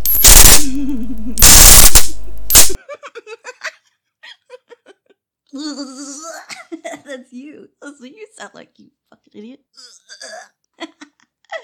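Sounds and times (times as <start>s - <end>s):
stun gun zapping: 0.0s - 2.8s
laughter: 0.6s - 1.4s, 2.8s - 5.1s
speech: 0.8s - 2.0s, 5.7s - 10.4s.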